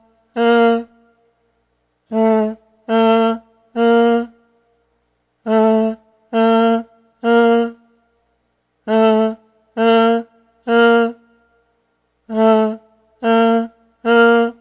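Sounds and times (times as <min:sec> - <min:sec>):
voice: 0:00.3 - 0:00.9, 0:02.1 - 0:04.4, 0:05.4 - 0:07.8, 0:08.9 - 0:11.2, 0:12.3 - 0:14.6.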